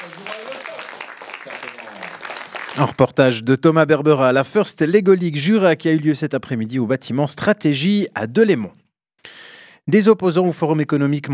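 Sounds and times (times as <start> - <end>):
audience applauding both teams at a First Lego League robotics contest: 0.0 - 3.2
speech: 2.8 - 11.3.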